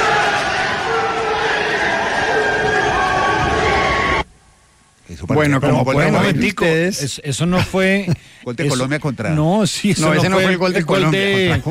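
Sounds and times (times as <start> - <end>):
legislators cheering and applauding in celebration: 0.0 - 4.3
speech: 5.3 - 11.7.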